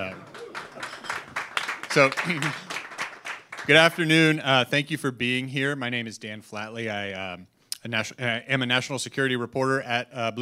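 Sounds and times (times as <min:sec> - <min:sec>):
light scattered audience applause: 0:00.0 - 0:04.3
speech: 0:02.0 - 0:02.7, 0:03.7 - 0:10.4.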